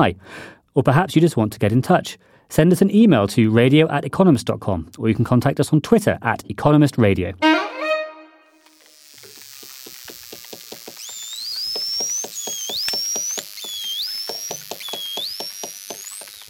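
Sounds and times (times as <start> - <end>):
speech: 0.0 - 7.6
bottlenose dolphin squeaks, chirps and whistles: 11.0 - 16.4.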